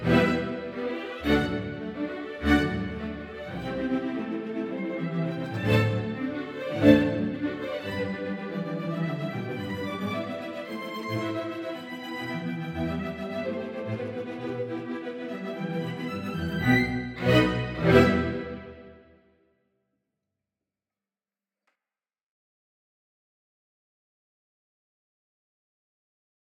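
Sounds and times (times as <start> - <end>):
strings: 0.0 - 19.0.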